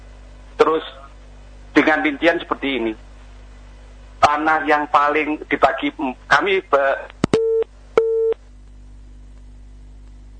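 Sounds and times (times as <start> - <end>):
speech: 0.7 - 1.0, 1.8 - 3.0, 4.3 - 7.2
busy tone after phone call disconnects: 7.4 - 8.4.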